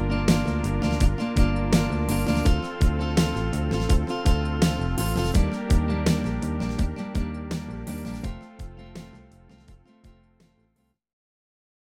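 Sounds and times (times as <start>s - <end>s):
pop music: 0.0s - 8.4s.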